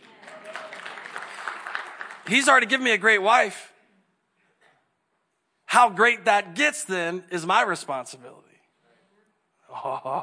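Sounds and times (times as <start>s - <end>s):
audience clapping: 0.0s - 3.2s
speech: 2.3s - 3.7s, 5.8s - 8.5s, 9.7s - 10.2s
laughter: 9.7s - 10.2s.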